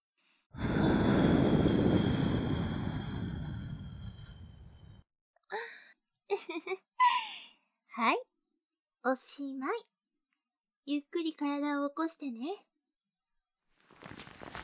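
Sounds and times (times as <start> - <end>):
gentle breath blown into the ear during ASMR ear cleaning: 0.5 - 5.0
speech: 6.3 - 6.8, 8.0 - 8.3, 9.0 - 9.9, 10.9 - 12.7.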